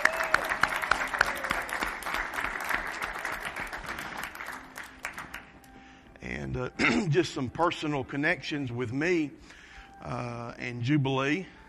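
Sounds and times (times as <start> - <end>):
audience applause: 0.0 - 5.5
speech: 6.5 - 11.6.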